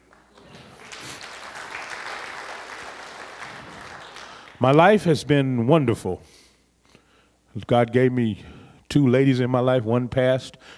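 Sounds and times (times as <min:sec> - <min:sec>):
audience clapping: 0:00.0 - 0:05.0
speech: 0:04.6 - 0:06.4, 0:07.6 - 0:10.7.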